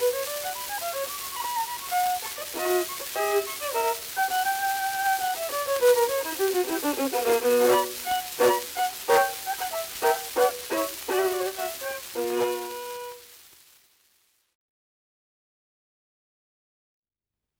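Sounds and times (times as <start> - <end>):
bourree in B minor: 0.0 - 13.2.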